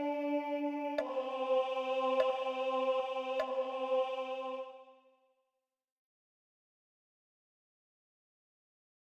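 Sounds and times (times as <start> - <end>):
tenor singing: 0.0 - 5.1.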